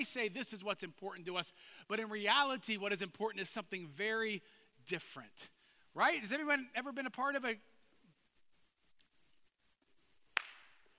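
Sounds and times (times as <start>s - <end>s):
speech: 0.0s - 7.7s
single hand clap: 10.3s - 10.9s.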